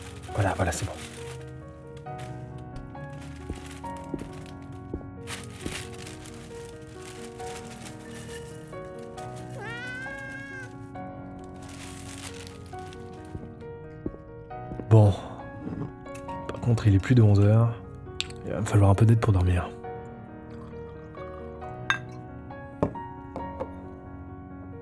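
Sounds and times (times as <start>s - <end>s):
dry kibble rattling: 0.0s - 13.6s
speech: 0.4s - 1.3s, 16.8s - 17.8s, 18.6s - 19.8s
cat meowing while being fed kibble: 9.5s - 10.8s.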